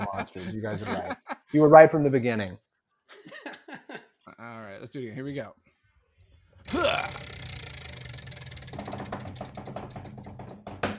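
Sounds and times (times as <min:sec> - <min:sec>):
laughter: 0:00.0 - 0:01.5, 0:03.1 - 0:04.2
speech: 0:00.0 - 0:03.4, 0:04.4 - 0:05.6
spinning wheel clicking to a stop: 0:06.7 - 0:10.6.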